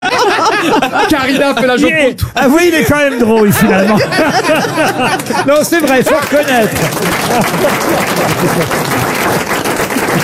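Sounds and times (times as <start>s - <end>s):
laughter: 0.0s - 10.2s
speech: 1.2s - 9.1s
audience applause: 4.4s - 10.2s.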